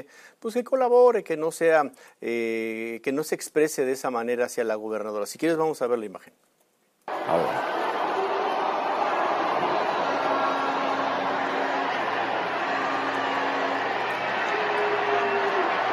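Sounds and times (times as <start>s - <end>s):
speech: 0.0s - 6.5s, 7.2s - 7.7s
crowd booing: 7.1s - 15.9s.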